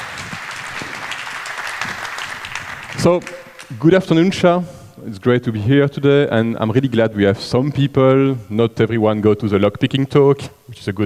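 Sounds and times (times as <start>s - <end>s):
conference audience applause welcoming a speaker for a security talk: 0.0s - 3.9s
speech: 3.0s - 11.0s.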